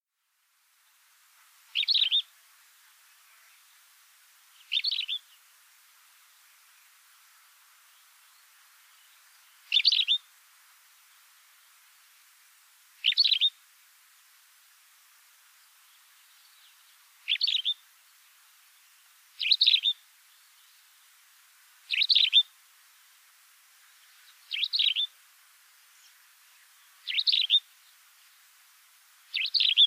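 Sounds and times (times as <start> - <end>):
bird chattering: 1.8 - 2.2, 4.7 - 5.2, 9.7 - 10.2, 13.0 - 13.5, 17.3 - 17.8, 19.4 - 20.0, 21.9 - 22.4, 24.5 - 25.1, 27.1 - 27.6, 29.3 - 29.8.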